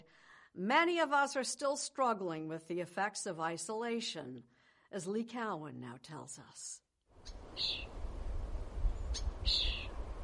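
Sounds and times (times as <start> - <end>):
speech: 0.5 - 8.0, 9.2 - 9.8
baby birds chirping in their nest: 9.1 - 9.9.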